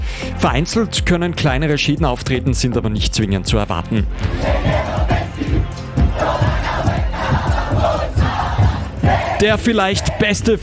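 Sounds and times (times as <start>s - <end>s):
speech: 0.4s - 5.0s, 9.4s - 10.6s
large football crowd cheering and chanting in a stadium: 4.2s - 10.4s.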